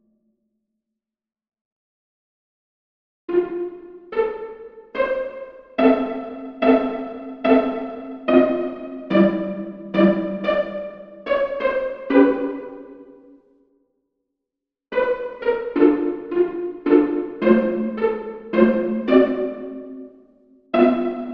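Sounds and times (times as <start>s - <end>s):
mandolin: 5.8s - 12.9s, 15.5s - 20.0s, 20.8s - 21.3s.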